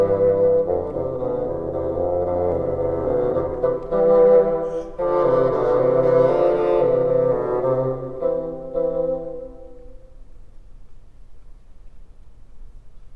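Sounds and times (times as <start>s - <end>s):
bassoon: 0.0s - 10.1s.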